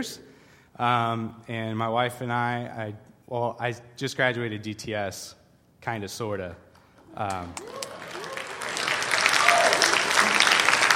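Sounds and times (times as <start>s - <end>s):
speech: 0.0s - 6.6s, 7.2s - 7.8s
audience applause: 7.3s - 10.9s.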